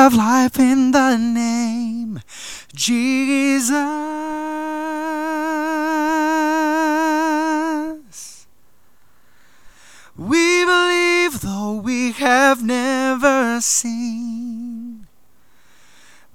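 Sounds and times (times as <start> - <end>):
lead vocal recording: 0.0 - 16.3.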